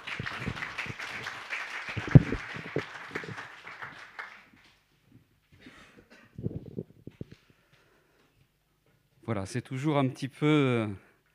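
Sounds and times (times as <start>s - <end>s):
audience applause welcoming a speaker: 0.0s - 4.7s
speech: 9.3s - 11.1s.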